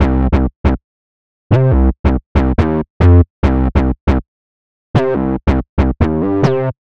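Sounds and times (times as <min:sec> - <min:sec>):
house bass in C minor: 0:00.0 - 0:00.8, 0:01.5 - 0:04.2, 0:05.0 - 0:06.8.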